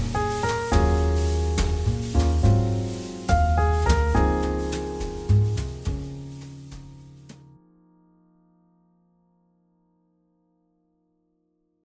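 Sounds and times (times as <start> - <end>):
jazz ballad: 0.0 - 7.5.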